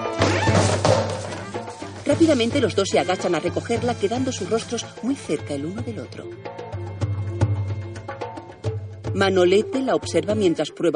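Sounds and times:
tray of polvorones knocked off a table crashing to the floor: 0.2 - 2.0
speech: 2.1 - 6.6, 9.1 - 10.9.

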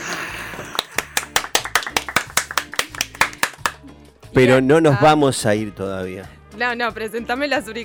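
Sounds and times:
audience applause: 0.7 - 3.8
speech: 4.4 - 7.8.

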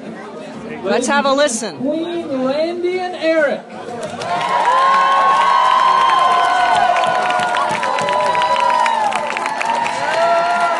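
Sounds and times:
speech: 0.7 - 5.0
crowd cheering and shouting: 4.0 - 10.7
scattered clapping: 4.0 - 10.7.

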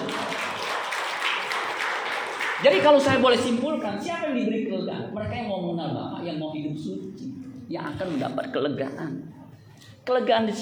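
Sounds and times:
audience clapping hands: 0.0 - 3.6
speech: 2.6 - 9.4, 10.0 - 10.6.

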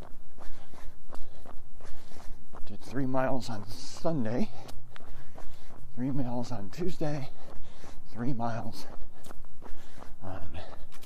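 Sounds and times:
running footsteps of a person on a run near the crest of a hill: 0.0 - 11.0
speech: 2.9 - 4.6, 6.0 - 7.4, 8.2 - 9.0.

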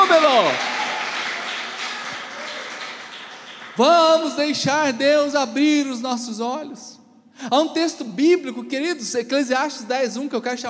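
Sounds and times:
audience applause: 0.0 - 4.3
crowd cheering: 0.0 - 4.3
speech: 0.4 - 0.7, 3.8 - 10.6.

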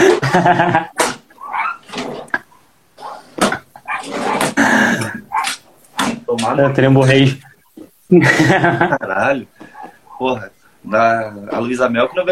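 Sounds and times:
laughter: 0.0 - 1.0, 4.6 - 5.3, 8.1 - 10.5
speech: 0.2 - 1.0, 6.5 - 7.5, 8.1 - 9.6, 10.2 - 12.3
enraged dog growling and barking: 1.0 - 6.2, 9.7 - 10.3.

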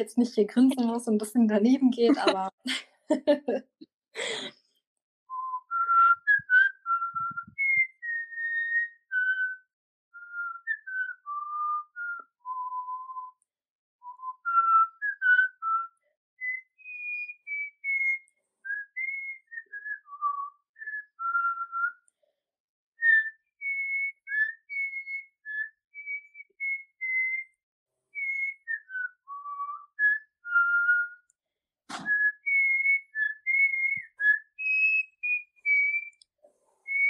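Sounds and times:
speech: 0.0 - 4.6
laughter: 2.0 - 4.5
person whistling a film theme melody: 5.3 - 22.2, 23.0 - 27.6, 28.2 - 31.3, 32.0 - 36.2, 36.8 - 37.0.

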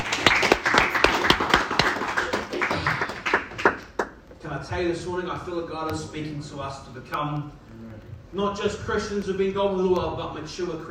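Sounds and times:
single person clapping hands: 0.0 - 4.2
low hum: 0.0 - 10.9
speech: 4.8 - 7.6, 8.3 - 10.9.

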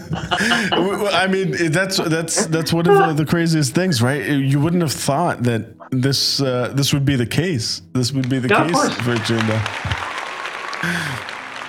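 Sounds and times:
laughter: 0.0 - 3.2, 8.5 - 10.2
speech: 0.1 - 10.0, 10.8 - 11.3
clapping: 8.2 - 11.6.

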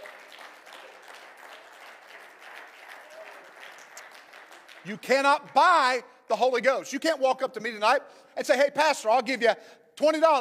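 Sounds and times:
audience clapping hands: 0.0 - 6.0
speech: 4.8 - 10.4.

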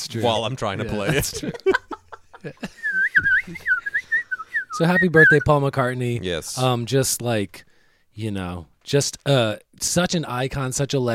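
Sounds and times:
speech: 0.1 - 1.8, 2.4 - 3.8, 4.8 - 11.1
laughter: 0.3 - 4.1
person whistling bird-like calls: 2.8 - 5.4.

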